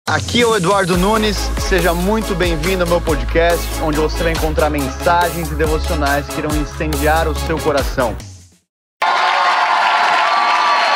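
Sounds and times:
speech: 0:00.1 - 0:08.3
crowd cheering and applauding: 0:09.0 - 0:10.9.

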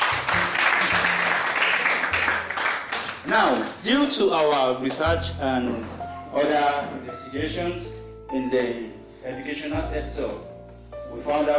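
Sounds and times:
audience applause: 0:00.0 - 0:05.1
speech: 0:03.3 - 0:10.5, 0:11.1 - 0:11.5.

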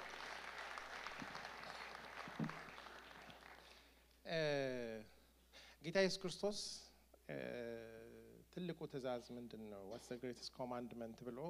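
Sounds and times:
audience clapping during a religious talk: 0:00.0 - 0:04.0
speech: 0:04.3 - 0:04.8, 0:05.8 - 0:07.6, 0:08.6 - 0:11.4.

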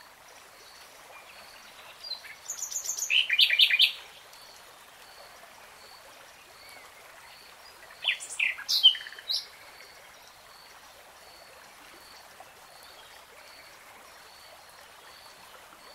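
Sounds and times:
soft hiss: 0:00.0 - 0:15.9
nightingale song: 0:01.1 - 0:10.2.

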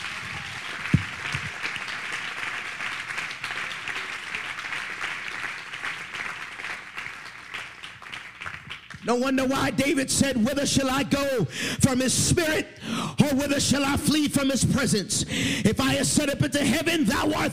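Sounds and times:
audience clapping hands: 0:00.0 - 0:09.6
speech: 0:09.1 - 0:17.5.

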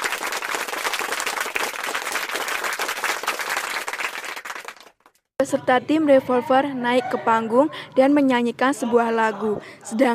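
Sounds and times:
audience applause: 0:00.0 - 0:05.2
speech: 0:05.4 - 0:10.1.

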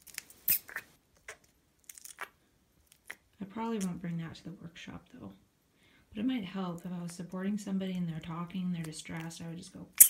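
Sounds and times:
squeaky fart putty being squeezed: 0:00.1 - 0:01.4
speech: 0:03.5 - 0:05.5, 0:06.2 - 0:10.0.

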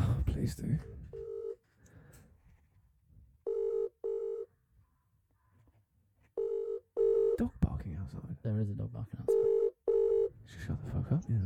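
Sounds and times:
ringback tone of an outgoing phone call: 0:03.5 - 0:04.5, 0:06.4 - 0:07.4, 0:09.3 - 0:10.3
speech: 0:07.4 - 0:09.7, 0:10.5 - 0:11.4.

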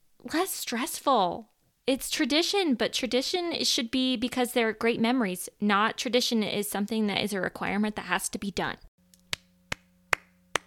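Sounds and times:
speech: 0:00.2 - 0:08.9
hand clapping: 0:09.2 - 0:10.6.

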